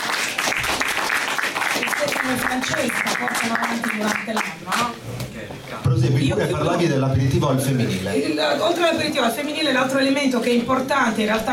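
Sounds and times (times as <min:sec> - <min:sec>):
audience applause at an Italian festival presentation: 0:00.0 - 0:04.9
speech: 0:02.3 - 0:11.5.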